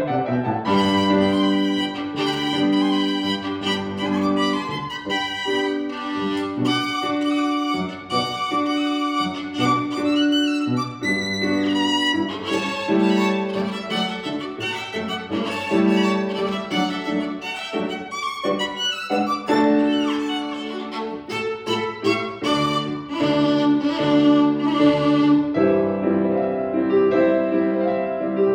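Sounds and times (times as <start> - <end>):
violin concerto third movement: 0.1 - 28.4.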